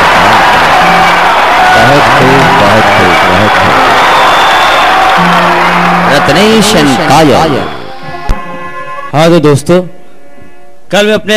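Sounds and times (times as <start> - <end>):
audience applause and cheering: 0.0 - 8.7
speech: 6.4 - 7.8, 9.1 - 10.0, 10.9 - 11.3.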